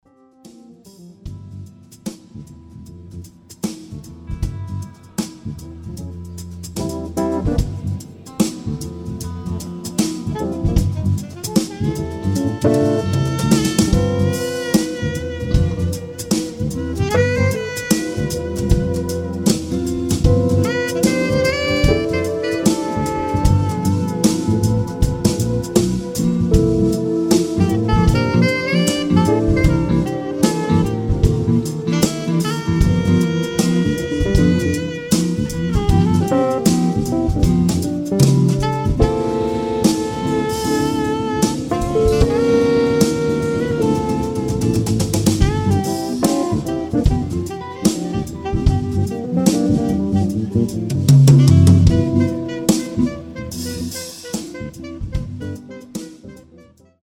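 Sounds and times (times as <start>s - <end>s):
live cocktail jazz quintet playing at an event: 0.1s - 57.0s.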